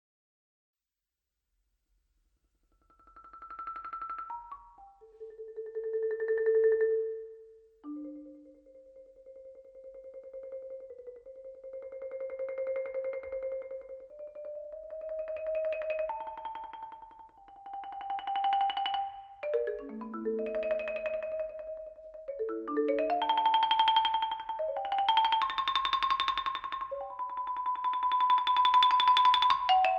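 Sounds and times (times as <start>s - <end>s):
marimba music played cantabile and very freely: 3.7s - 29.9s.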